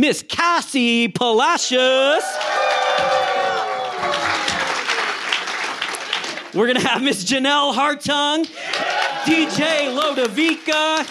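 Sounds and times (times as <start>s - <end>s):
speech: 0.0s - 4.6s, 6.5s - 11.0s
audience whoops and shouts: 2.0s - 5.0s, 8.6s - 10.0s
audience clapping as performers walk onto the stage: 2.2s - 7.2s, 8.2s - 11.0s.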